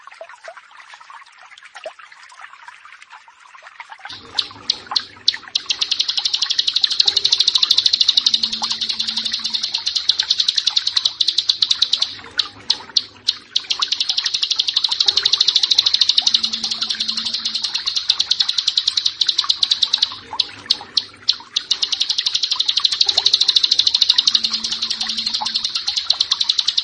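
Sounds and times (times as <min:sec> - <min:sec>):
bar-winged prinia song: 0:04.1 - 0:26.8.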